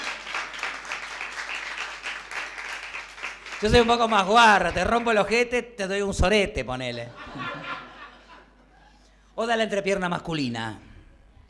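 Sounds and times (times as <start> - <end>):
audience applause: 0.0 - 5.1
speech: 3.6 - 7.8, 9.4 - 10.9
laughter: 7.0 - 9.0.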